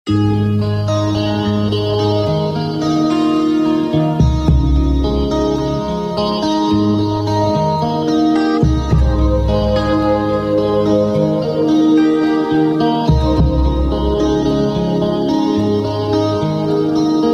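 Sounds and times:
sweet tone: 0.1 - 17.3.

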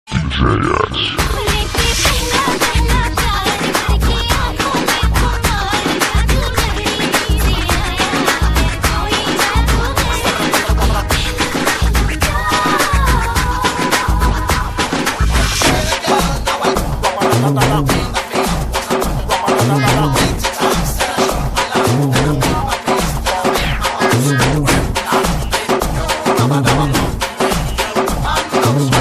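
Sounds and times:
Hindi kuthu dance music mix: 0.4 - 29.0.

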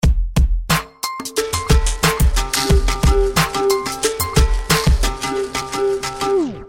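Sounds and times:
jazzy music: 0.7 - 6.6.

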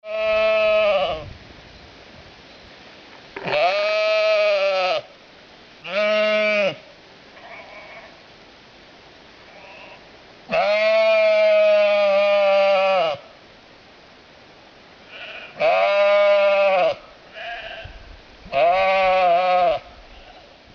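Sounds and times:
sheep bleating: 0.0 - 1.2, 3.4 - 5.1, 5.8 - 6.8, 9.5 - 13.2, 15.1 - 17.9, 18.5 - 20.5.

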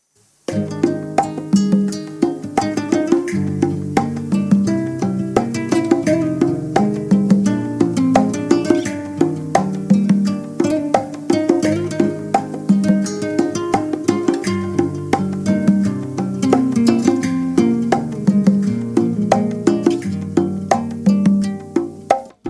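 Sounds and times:
Arabic guitar: 0.5 - 22.4.

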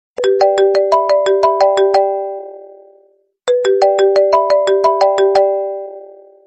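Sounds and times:
marimba: 0.2 - 2.6, 3.5 - 6.2.

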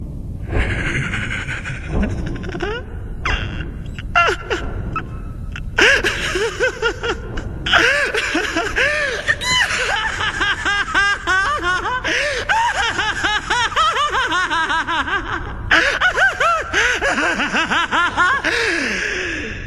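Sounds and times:
dubbed laughter: 0.5 - 19.4.

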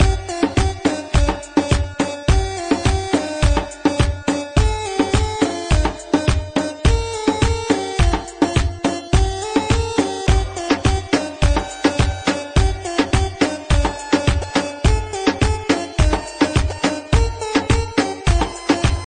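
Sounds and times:
Arabic music: 0.0 - 19.1.

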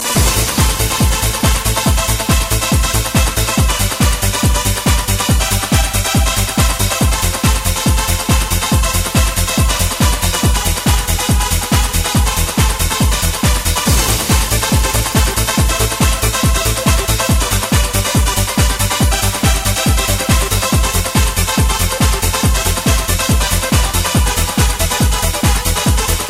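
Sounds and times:
serious trance music: 0.0 - 26.2.

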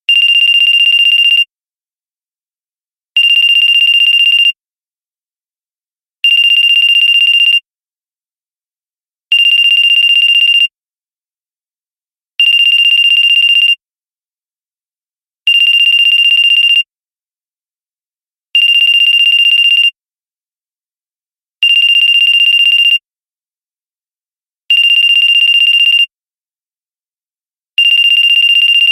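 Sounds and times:
ringtone from an anime: 0.2 - 1.5, 3.2 - 4.6, 6.3 - 7.6, 9.3 - 10.7, 12.4 - 13.8, 15.5 - 16.9, 18.6 - 20.0, 21.6 - 23.0, 24.7 - 26.1, 27.8 - 28.8.

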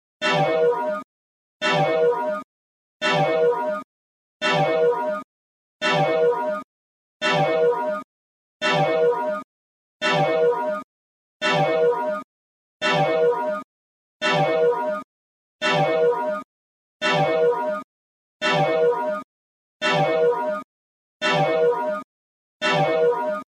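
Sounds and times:
alarm: 0.2 - 23.5.

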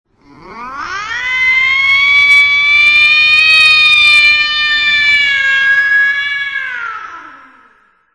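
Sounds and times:
horror music: 1.2 - 8.1.

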